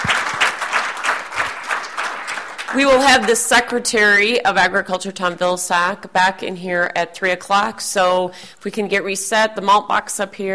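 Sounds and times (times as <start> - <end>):
audience applause at a public forum: 0.0 - 3.4
speech: 2.7 - 10.5.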